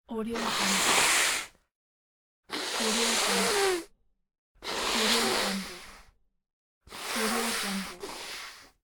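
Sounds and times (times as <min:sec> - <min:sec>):
person blowing nose: 0:00.4 - 0:01.6, 0:02.5 - 0:03.9, 0:04.6 - 0:06.1, 0:06.9 - 0:08.8.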